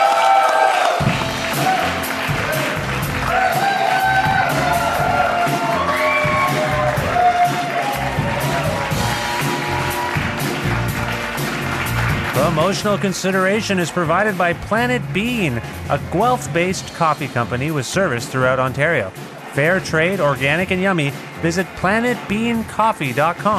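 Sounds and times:
audience applause: 0.0 - 13.6, 18.9 - 23.5
speech: 12.6 - 23.5.

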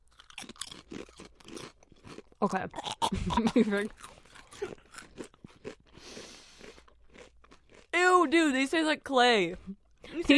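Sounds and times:
crunching on potato chips: 0.0 - 3.0, 3.8 - 8.0
speech: 2.4 - 4.8, 8.3 - 10.3.

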